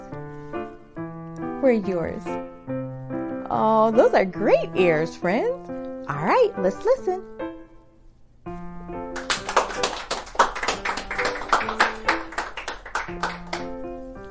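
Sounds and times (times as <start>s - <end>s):
bright cheerful music: 0.0s - 7.8s, 8.5s - 14.2s
speech: 1.6s - 2.5s, 3.5s - 7.4s
rhythmic hand clapping: 9.1s - 13.9s.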